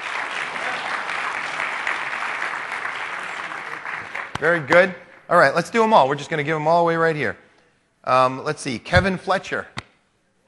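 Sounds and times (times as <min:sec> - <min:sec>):
audience applause: 0:00.0 - 0:05.2
speech: 0:04.4 - 0:07.4, 0:08.0 - 0:09.7.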